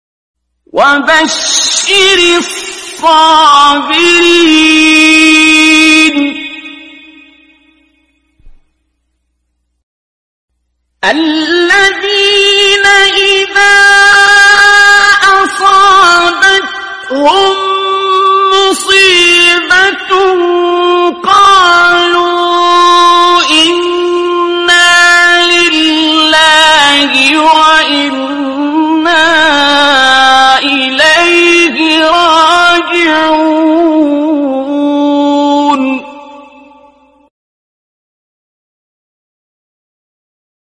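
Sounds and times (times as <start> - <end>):
person reciting a Quran verse: 0.7 - 7.7, 11.0 - 37.3.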